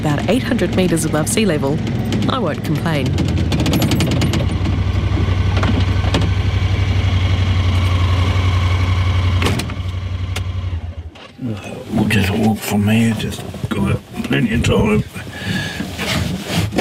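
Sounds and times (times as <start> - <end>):
side-by-side utility vehicle engine idling: 0.0 - 13.2
speech: 0.3 - 3.8, 11.5 - 15.6.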